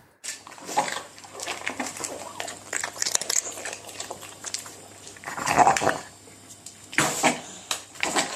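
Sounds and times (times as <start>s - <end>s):
dog eating noisily with blocked nose: 0.4s - 7.0s
dog gulping snorts: 0.6s - 6.2s.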